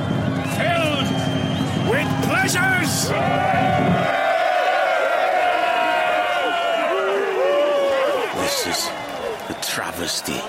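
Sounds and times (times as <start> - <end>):
large crowd cheering and whooping: 0.0 - 10.4
speech: 2.4 - 4.2
low roar: 3.0 - 9.0.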